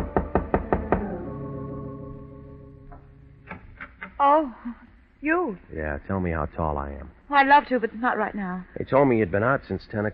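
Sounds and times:
firm knocks on a door: 0.0s - 1.2s
low lingering ringing tone: 0.0s - 3.6s
speech: 4.2s - 10.1s.

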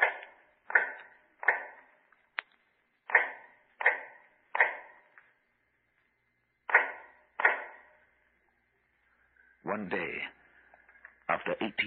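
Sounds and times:
shoemaker hammering at work: 0.0s - 2.0s, 3.0s - 5.2s, 6.7s - 8.0s
speech: 9.8s - 10.3s, 11.5s - 11.8s.

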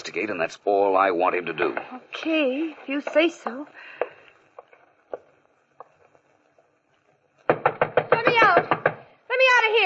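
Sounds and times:
speech: 0.2s - 4.0s, 9.7s - 9.8s
fist banging on a door: 7.5s - 9.1s.

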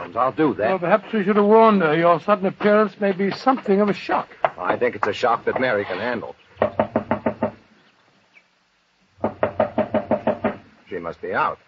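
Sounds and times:
speech: 0.1s - 6.4s, 11.0s - 11.6s
knocking on a door: 6.6s - 7.6s, 9.2s - 10.7s.

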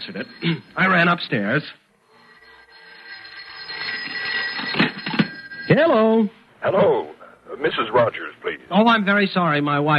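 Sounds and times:
speech: 0.0s - 1.8s, 5.7s - 9.9s
telephone bell ringing: 0.0s - 6.4s.

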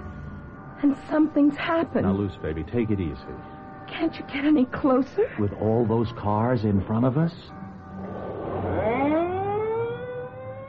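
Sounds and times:
speech: 0.8s - 7.6s
ambulance siren wailing: 8.0s - 10.6s.

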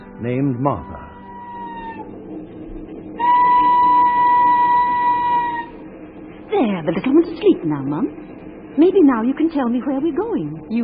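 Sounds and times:
loud sustained whistle: 0.0s - 2.1s, 3.2s - 5.9s
train rumbling on rails: 0.0s - 10.8s
speech: 0.2s - 1.1s, 6.5s - 8.2s, 8.8s - 10.8s.

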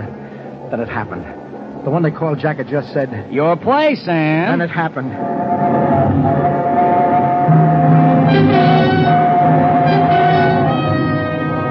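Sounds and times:
train roaring through a tunnel: 0.0s - 11.6s
speech: 0.7s - 9.2s.

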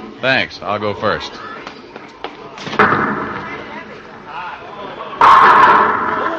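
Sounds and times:
speech: 0.2s - 1.6s
bowling pins crashing: 2.6s - 3.7s, 5.2s - 6.3s.

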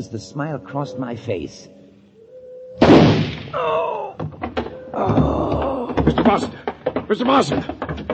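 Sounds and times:
speech: 0.0s - 1.8s, 3.5s - 4.1s, 5.0s - 5.4s, 6.3s - 7.8s
shotgun blast: 2.8s - 3.6s
knocking noises: 4.1s - 8.1s.

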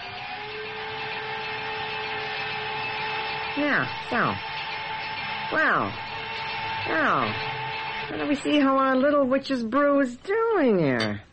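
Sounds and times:
blender running: 0.0s - 9.0s
speech: 3.6s - 4.5s, 5.5s - 6.1s, 6.9s - 11.3s.

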